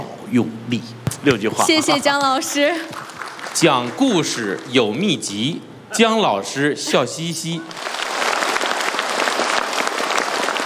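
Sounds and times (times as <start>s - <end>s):
speech: 0.3s - 7.9s
audience clapping: 2.8s - 4.9s, 7.7s - 10.6s.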